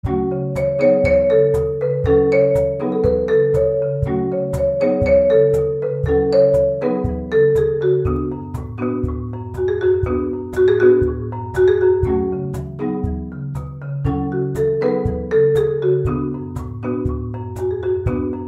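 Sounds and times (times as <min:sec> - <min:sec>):
marimba: 0:00.0 - 0:18.4.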